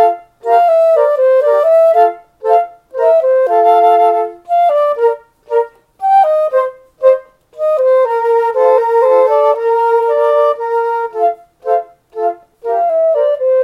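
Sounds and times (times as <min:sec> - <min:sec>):
trio with percussion playing German dance: 0:00.0 - 0:13.6.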